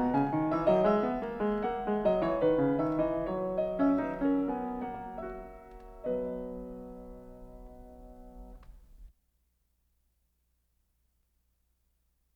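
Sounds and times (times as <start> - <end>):
keyboard fugue in B major: 0.0 - 8.5.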